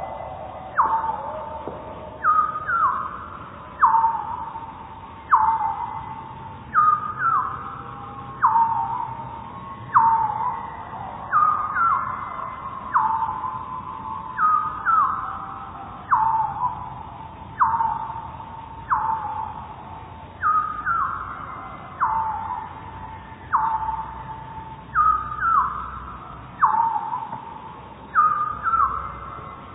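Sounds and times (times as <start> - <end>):
song thrush singing in the background: 0.0 - 29.7.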